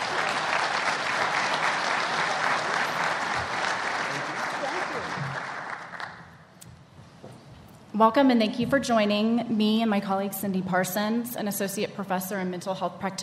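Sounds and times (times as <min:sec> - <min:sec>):
audience applause: 0:00.0 - 0:06.4
speech: 0:08.0 - 0:13.2.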